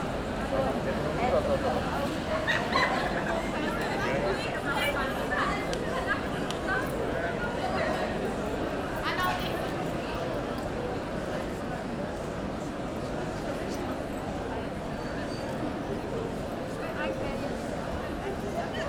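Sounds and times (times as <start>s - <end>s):
restaurant crowd chattering in a pedestrian zone: 0.0s - 18.8s.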